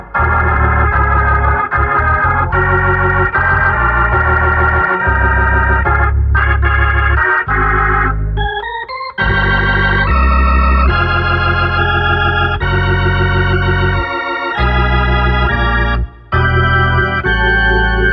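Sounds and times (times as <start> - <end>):
gospel music on a Hammond organ: 0.0 - 18.1.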